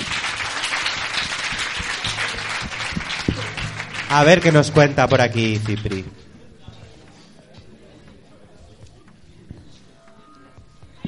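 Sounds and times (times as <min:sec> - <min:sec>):
audience applause: 0:00.0 - 0:06.2
speech: 0:04.1 - 0:06.2.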